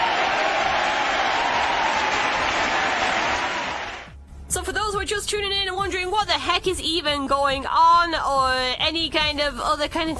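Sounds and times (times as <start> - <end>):
crowd applauding: 0.0 - 4.1
speech: 5.1 - 10.1.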